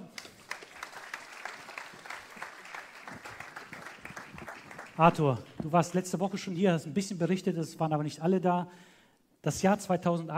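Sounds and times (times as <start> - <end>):
audience applause: 0.0 - 5.4
speech: 5.0 - 10.3.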